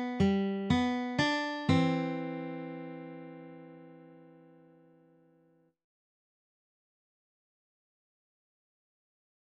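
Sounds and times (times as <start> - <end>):
guitar playing a song: 0.0 - 5.5.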